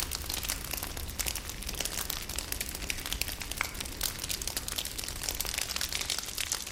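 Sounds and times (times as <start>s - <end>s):
fireplace fire crackling: 0.0s - 6.7s.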